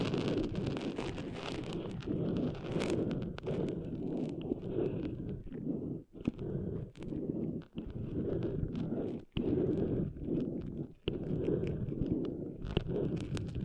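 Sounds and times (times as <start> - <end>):
gritty rubbing and scratching of sand cleaned out of ears: 0.0 - 13.6
sharp little clicks and crackles: 0.0 - 13.6.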